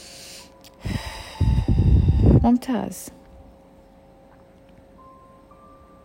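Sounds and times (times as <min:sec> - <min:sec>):
deep breathing during a guided breathing exercise: 0:00.0 - 0:02.4
speech: 0:02.5 - 0:03.2.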